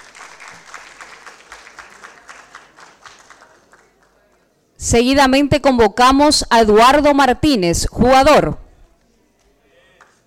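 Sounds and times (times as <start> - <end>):
applause: 0.0 - 4.6, 9.9 - 10.2
speech: 4.8 - 8.6.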